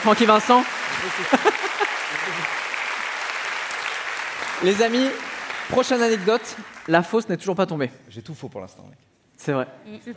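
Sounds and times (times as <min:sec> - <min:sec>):
speech: 0:00.0 - 0:02.6, 0:04.6 - 0:10.1
applause: 0:00.0 - 0:07.2
laughter: 0:00.9 - 0:02.6.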